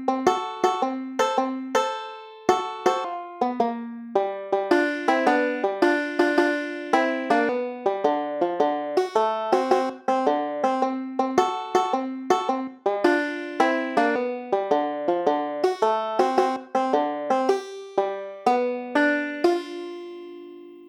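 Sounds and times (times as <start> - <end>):
12 bar blues music: 0.2 - 20.7.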